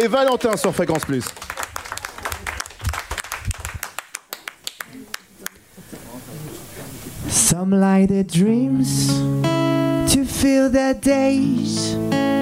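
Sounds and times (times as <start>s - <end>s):
speech: 0.0s - 1.6s, 7.6s - 12.2s
audience applause: 0.0s - 5.6s.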